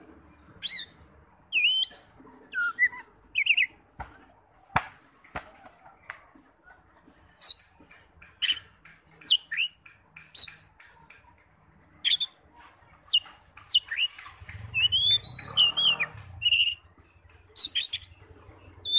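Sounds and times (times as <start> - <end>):
Oriental magpie-robin singing: 0.3 - 3.8, 7.4 - 18.9.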